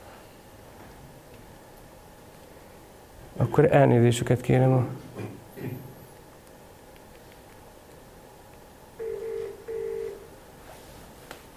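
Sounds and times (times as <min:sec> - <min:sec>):
speech: 0:03.4 - 0:05.8
telephone keypad tones: 0:09.0 - 0:10.3.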